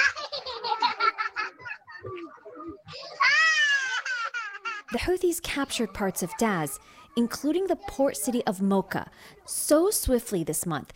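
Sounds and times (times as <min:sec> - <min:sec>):
laughter: 0:00.0 - 0:05.0
speech: 0:04.9 - 0:10.9
child's voice in a displacement camp: 0:05.6 - 0:09.0.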